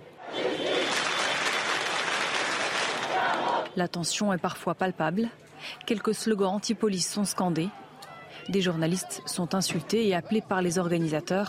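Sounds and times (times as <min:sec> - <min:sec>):
large crowd clapping in rhythm: 0:00.4 - 0:03.7
speech: 0:03.8 - 0:07.8, 0:08.5 - 0:11.4.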